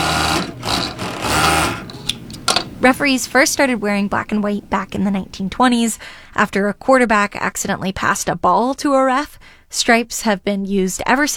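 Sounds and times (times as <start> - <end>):
sewing machine stitching fabric for a shirt: 0.0 - 5.9
speech: 2.8 - 11.3.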